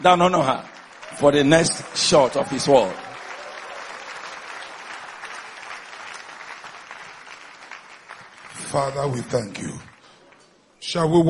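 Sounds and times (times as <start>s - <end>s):
speech: 0.0s - 3.1s, 8.7s - 9.9s, 10.8s - 11.2s
church congregation applauding to welcome a bishop: 0.0s - 10.5s.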